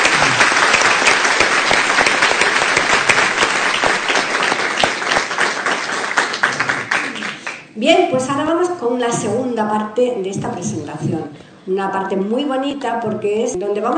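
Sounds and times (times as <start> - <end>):
audience applauding loudly: 0.0 - 7.7
speech: 7.8 - 13.9.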